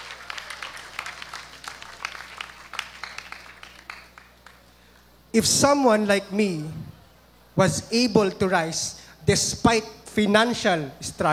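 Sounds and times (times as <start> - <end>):
applause for the guards and cleaning staff of the TAPS campus: 0.0 - 5.1
low steady hum: 0.0 - 11.3
speech: 5.4 - 6.9, 7.6 - 11.3.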